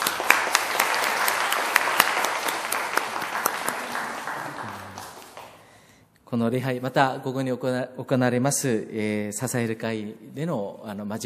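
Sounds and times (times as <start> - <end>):
audience applauding: 0.0 - 5.8
speech: 6.3 - 11.2.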